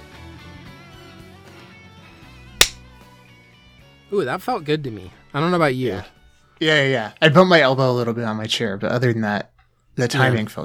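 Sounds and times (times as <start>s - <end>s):
hand clap for timing sync: 2.6s - 2.8s
speech: 4.1s - 10.6s.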